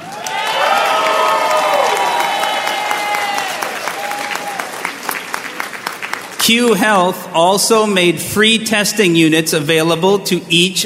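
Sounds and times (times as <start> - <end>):
whoops and cheers: 0.0 - 5.0
crowd applause: 0.0 - 6.5
speech: 6.4 - 10.8.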